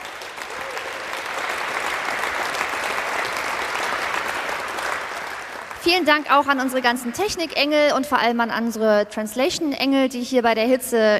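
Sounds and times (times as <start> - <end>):
audience applause in a tent: 0.0 - 6.2
speech: 5.9 - 11.1.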